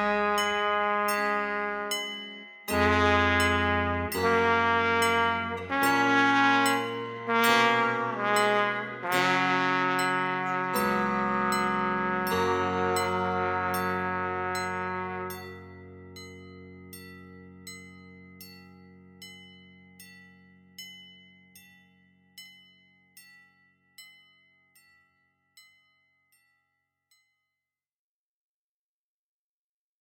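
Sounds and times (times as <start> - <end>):
instrumental evening song without words: 0.0 - 21.7.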